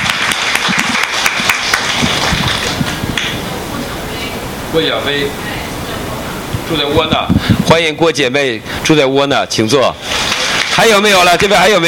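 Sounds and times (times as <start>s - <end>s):
audience applauding: 0.0s - 3.4s, 10.1s - 11.3s
speech: 4.7s - 5.5s, 6.7s - 10.1s, 10.8s - 11.8s.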